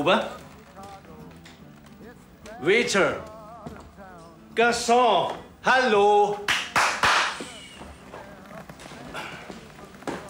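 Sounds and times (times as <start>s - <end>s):
speech: 0.0s - 0.4s, 2.6s - 3.3s, 4.6s - 6.5s
hand clapping to summon a waiter: 6.4s - 7.6s.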